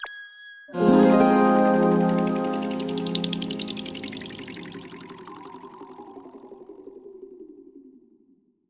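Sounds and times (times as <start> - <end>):
music sting: 0.8 - 6.2.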